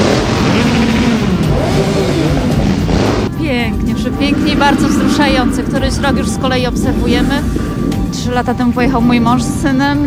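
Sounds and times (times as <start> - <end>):
motorcycles in an independence parade through Wrocław: 0.0 - 10.0
speech: 4.2 - 10.0.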